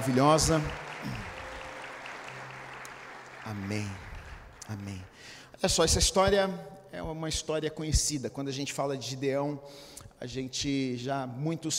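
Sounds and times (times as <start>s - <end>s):
speech: 0.0s - 0.8s, 3.5s - 4.0s, 4.7s - 11.7s
audience applause: 0.0s - 5.4s.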